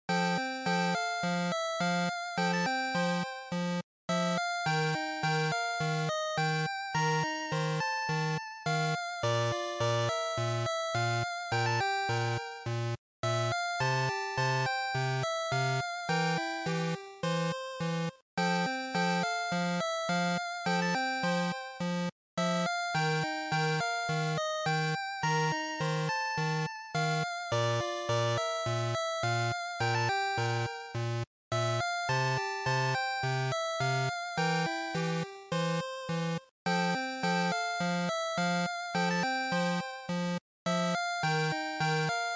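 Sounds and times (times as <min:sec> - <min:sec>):
Game Boy RPG title screen music: 0:00.1 - 0:42.3.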